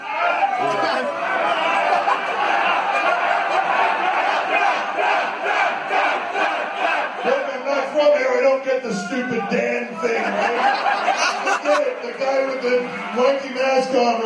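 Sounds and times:
laughter: 0.6s - 14.2s
wrestling fans chanting at live event: 0.8s - 8.2s
speech: 8.8s - 14.2s.

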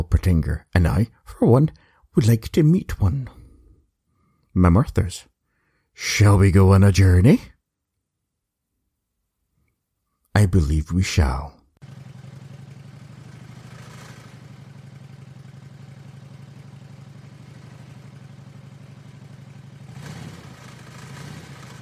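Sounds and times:
speech: 0.0s - 3.4s, 4.6s - 5.3s, 6.0s - 7.5s, 10.4s - 12.0s
motorcycle engine purring at idle: 11.8s - 21.7s.

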